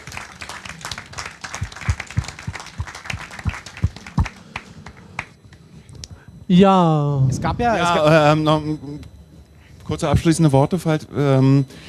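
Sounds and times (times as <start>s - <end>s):
people clapping: 0.0s - 5.4s
speech: 6.5s - 9.1s, 9.9s - 11.8s.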